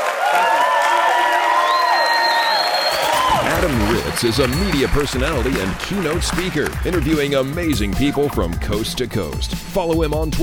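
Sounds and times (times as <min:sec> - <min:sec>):
audience applause: 0:00.0 - 0:08.1
speech: 0:03.6 - 0:10.4.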